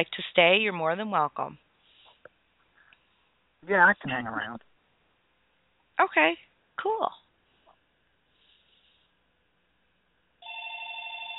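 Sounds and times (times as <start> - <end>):
speech: 0.0 - 1.6, 3.6 - 4.7, 6.0 - 7.2
telephone ringing with electronic trill: 10.4 - 11.3.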